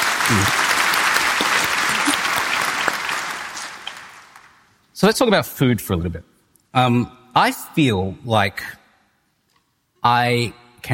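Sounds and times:
audience applause: 0.0s - 4.6s
speech: 0.3s - 0.6s, 5.0s - 8.8s, 10.0s - 10.9s.

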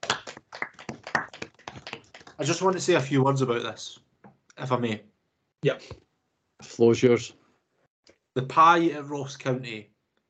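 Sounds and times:
round of applause from a small group: 0.0s - 3.2s
speech: 2.4s - 4.0s, 4.6s - 6.0s, 6.6s - 7.4s, 8.4s - 9.9s.

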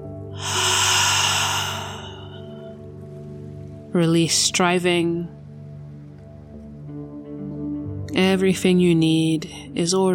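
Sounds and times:
long loud breath out through the mouth during a guided breathing exercise: 0.4s - 2.8s
speech: 3.9s - 5.4s, 8.2s - 10.1s.

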